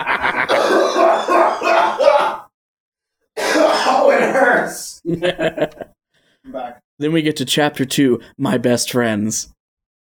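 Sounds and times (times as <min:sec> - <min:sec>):
person imitating choking and coughing: 0:00.5 - 0:02.5, 0:03.4 - 0:04.3
speech: 0:04.7 - 0:05.7, 0:07.0 - 0:09.6.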